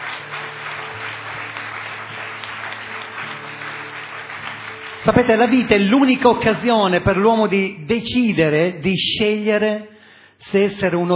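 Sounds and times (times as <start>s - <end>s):
audience applauding: 0.0s - 6.7s
speech: 5.0s - 11.1s.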